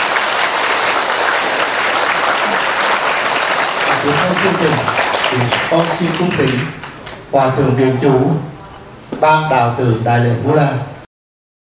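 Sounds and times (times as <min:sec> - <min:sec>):
audience applause: 0:00.0 - 0:07.2
speech: 0:04.1 - 0:08.5, 0:09.2 - 0:10.9.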